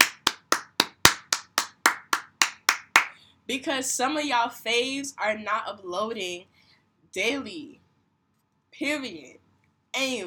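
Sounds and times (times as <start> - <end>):
clapping: 0.0 - 3.1
speech: 3.5 - 6.5, 7.1 - 7.8, 8.8 - 9.4, 10.0 - 10.2.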